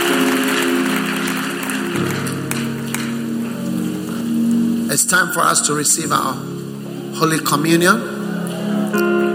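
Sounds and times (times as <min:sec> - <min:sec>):
audience applause: 0:00.0 - 0:04.4
speech: 0:05.1 - 0:08.2, 0:08.9 - 0:09.2.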